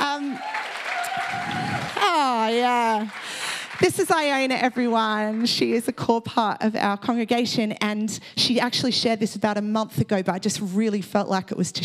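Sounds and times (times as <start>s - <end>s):
audience applause: 0.0s - 5.6s
speech: 2.5s - 11.8s.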